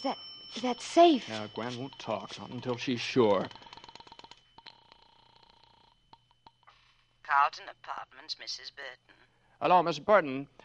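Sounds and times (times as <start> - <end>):
speech: 0.0 - 3.6, 7.4 - 10.6
sustained steady telephone tone: 0.6 - 6.0.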